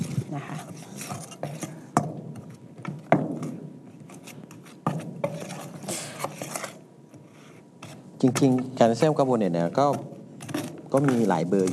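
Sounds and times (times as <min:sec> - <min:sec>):
ladle scraping in a bowl mixing herbal toothpaste ingredients: 0:00.0 - 0:01.8, 0:04.1 - 0:08.4
speech: 0:00.3 - 0:01.1, 0:08.2 - 0:10.1, 0:10.9 - 0:11.7.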